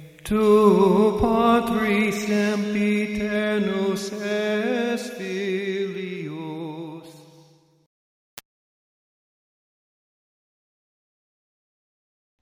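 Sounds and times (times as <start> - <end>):
hymn: 0.0 - 7.6.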